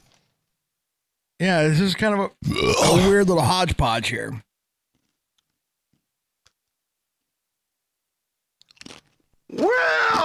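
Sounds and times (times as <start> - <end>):
speech: 1.4 - 4.5, 9.5 - 10.2
chewing crunchy snack mix of corn nuts and bagel chips: 8.6 - 9.3.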